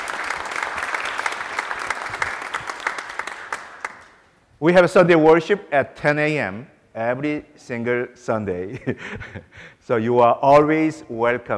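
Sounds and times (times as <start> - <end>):
church audience applauding first-time visitors: 0.0 - 4.2
speech: 4.6 - 11.5.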